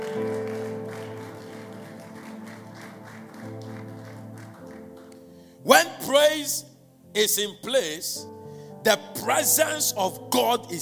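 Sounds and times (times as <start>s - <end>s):
audience clapping: 0.0s - 5.5s
sustained keyboard or organ chords: 0.0s - 10.8s
speech: 5.6s - 10.8s.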